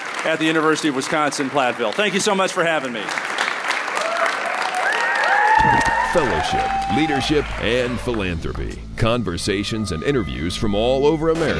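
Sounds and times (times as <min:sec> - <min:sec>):
round of applause from a crowd: 0:00.0 - 0:08.4
speech: 0:00.2 - 0:03.4, 0:05.6 - 0:11.5
faint whistles and cheers: 0:03.9 - 0:08.2.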